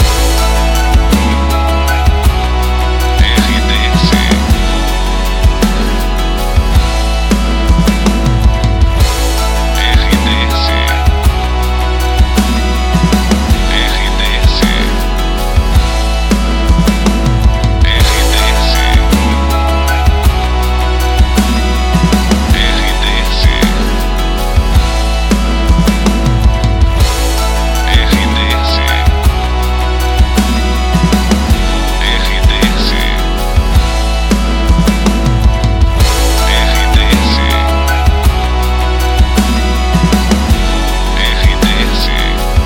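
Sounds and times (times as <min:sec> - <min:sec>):
romantic background music for voice-over: 0:00.0 - 0:42.6.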